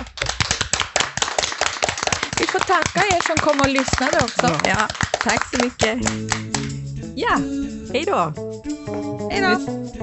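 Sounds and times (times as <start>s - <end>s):
audience applause: 0.0s - 6.5s
speech: 2.7s - 10.0s.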